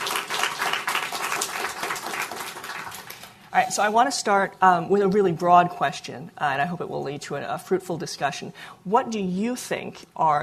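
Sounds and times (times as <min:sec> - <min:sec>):
audience applause welcoming guests: 0:00.0 - 0:03.3
speech: 0:03.6 - 0:10.4.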